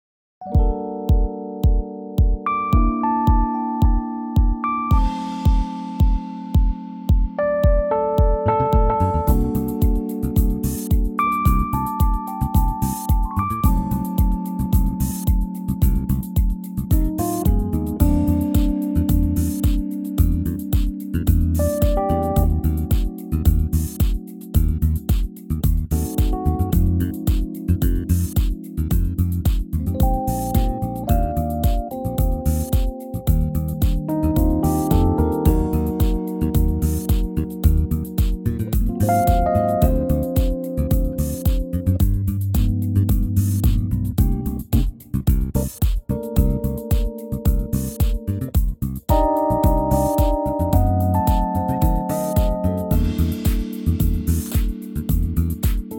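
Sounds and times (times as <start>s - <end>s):
smooth backing track in B flat: 0.4s - 55.9s.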